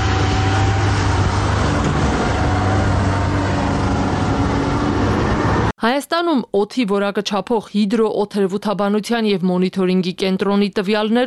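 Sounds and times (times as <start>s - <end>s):
broadband road noise: 0.0s - 5.7s
truck pulling out of a construction site onto a dusty road: 0.0s - 5.7s
speech: 5.8s - 11.2s.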